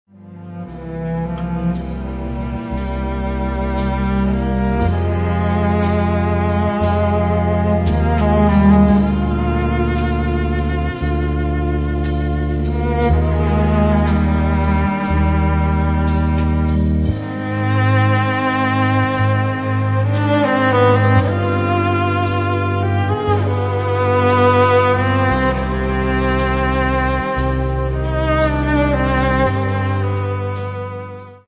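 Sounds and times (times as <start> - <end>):
cello: 0.0 - 31.4.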